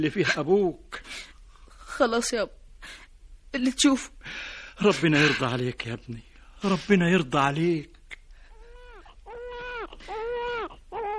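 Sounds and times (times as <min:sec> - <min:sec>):
speech: 0:00.0 - 0:01.2, 0:02.0 - 0:08.0
boy crying: 0:08.8 - 0:11.1.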